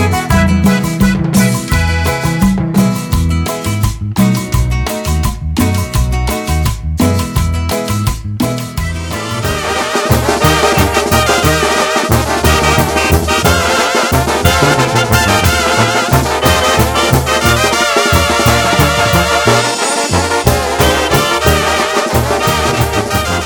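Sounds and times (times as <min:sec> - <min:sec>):
traditional Latin music mix: 0:00.0 - 0:23.4.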